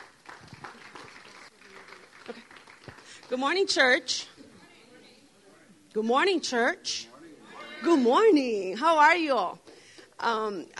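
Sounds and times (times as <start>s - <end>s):
audience applauding: 0.0s - 3.4s
speech: 3.3s - 4.3s, 6.0s - 7.1s, 7.8s - 9.6s, 10.2s - 10.7s.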